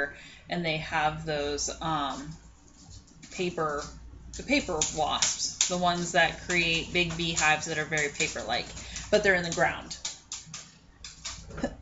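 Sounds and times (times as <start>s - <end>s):
speech: 0.0s - 2.4s, 3.4s - 10.0s
cat scratching, sharpening its claws: 2.2s - 11.6s.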